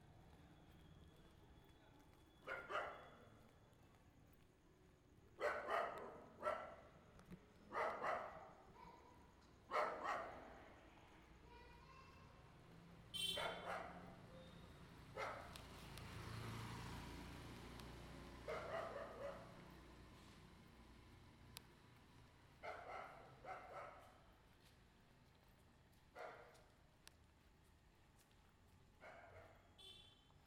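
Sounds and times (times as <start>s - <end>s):
street ambience: 0.0s - 30.4s
dog: 2.4s - 3.5s, 5.4s - 7.0s, 7.7s - 10.6s, 13.2s - 14.5s, 15.1s - 15.6s, 18.4s - 19.7s, 22.6s - 24.4s, 26.1s - 26.8s, 29.0s - 29.8s.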